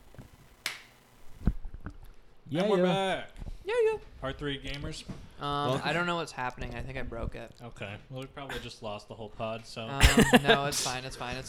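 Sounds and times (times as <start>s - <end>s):
hand clap marking a recording pause: 0.6s - 0.9s
speech: 2.5s - 11.4s
laughter: 10.0s - 10.9s.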